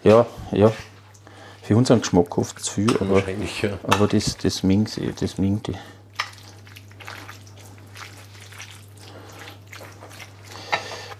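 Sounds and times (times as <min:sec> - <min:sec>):
speech: 0:00.0 - 0:00.9, 0:01.7 - 0:06.0
water being added while cooking: 0:06.2 - 0:10.6.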